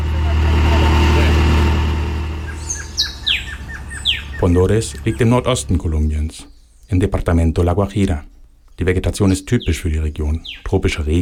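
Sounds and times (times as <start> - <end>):
car engine droning while driving: 0.0 - 6.4
bird chirps: 0.0 - 11.2
speech: 4.4 - 11.2.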